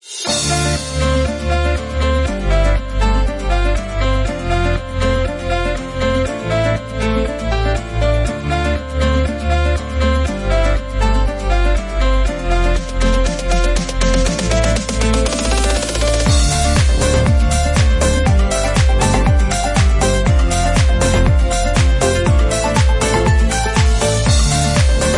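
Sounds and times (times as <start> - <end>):
funny bright tropical house dance background music: 0.0 - 25.1.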